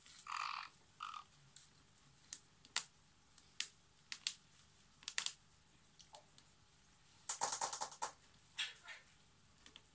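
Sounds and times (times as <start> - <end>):
parrot chattering with harsh squawks, clicks and short high whistles: 0.2 - 1.3, 7.3 - 9.2.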